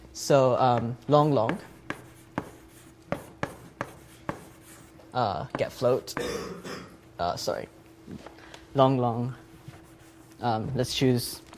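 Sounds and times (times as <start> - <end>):
faint hum: 0.0 - 11.5
speech: 0.2 - 1.7, 5.2 - 9.4, 10.4 - 11.5
writing on a board: 0.7 - 6.2.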